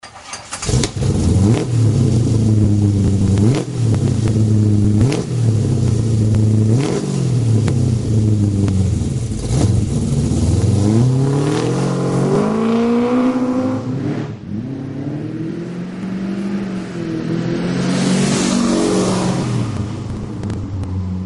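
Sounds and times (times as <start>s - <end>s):
Magnaflow exhaust system: 0.6s - 21.2s.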